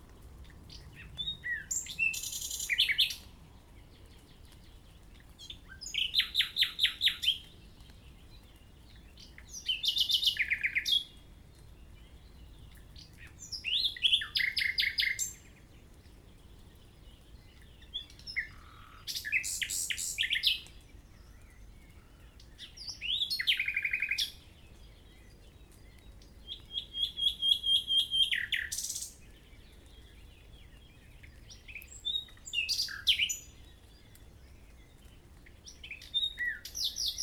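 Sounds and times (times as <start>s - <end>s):
common nightingale singing: 0.6s - 3.3s, 4.1s - 11.2s, 12.2s - 15.8s, 16.4s - 37.2s.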